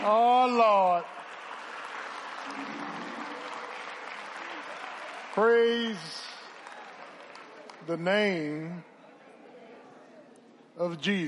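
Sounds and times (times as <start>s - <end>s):
audience applauding: 0.0s - 8.0s
speech: 5.4s - 6.3s, 7.9s - 8.9s, 10.8s - 11.2s.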